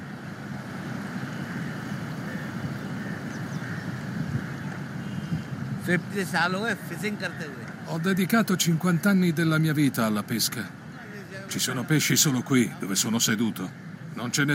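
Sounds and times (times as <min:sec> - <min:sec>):
flowing river water: 0:00.0 - 0:14.5
speech: 0:05.9 - 0:10.8, 0:11.5 - 0:14.5.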